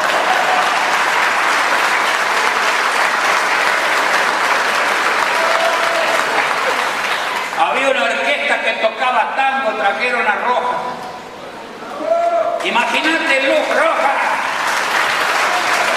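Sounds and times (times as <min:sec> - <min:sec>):
audience applause: 0:00.0 - 0:08.3, 0:13.4 - 0:15.9
speech: 0:09.0 - 0:11.0, 0:12.6 - 0:14.3.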